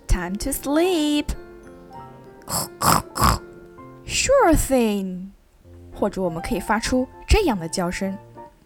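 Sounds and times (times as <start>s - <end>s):
speech: 0.2s - 1.4s, 2.5s - 3.4s, 4.1s - 5.4s, 6.0s - 8.3s
pig grunting: 2.5s - 3.5s.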